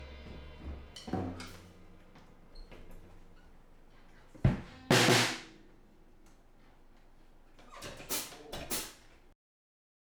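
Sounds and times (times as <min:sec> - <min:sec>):
drums through a room compressor: 0:00.0 - 0:05.7, 0:07.8 - 0:09.1.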